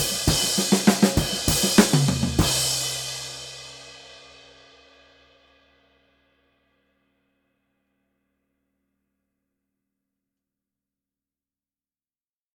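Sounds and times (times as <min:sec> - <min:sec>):
traditional light ride cymbal: 0:00.0 - 0:05.7.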